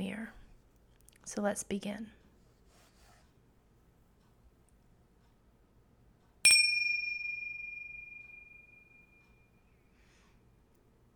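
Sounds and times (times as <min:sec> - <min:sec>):
speech: 0:01.3 - 0:02.2
bell struck during a guided mantra session: 0:06.5 - 0:09.3.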